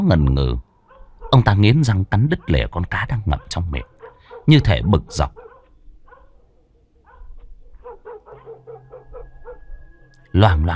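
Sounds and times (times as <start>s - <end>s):
speech: 0.0s - 0.7s, 1.3s - 5.4s, 10.3s - 10.7s
dog barking: 0.9s - 1.6s, 2.2s - 10.0s.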